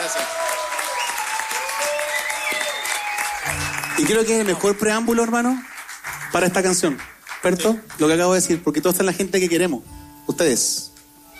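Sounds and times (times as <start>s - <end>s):
faint whistles and cheers: 0.0s - 4.4s
audience applause: 0.0s - 9.0s
speech: 4.0s - 5.7s, 6.3s - 10.9s.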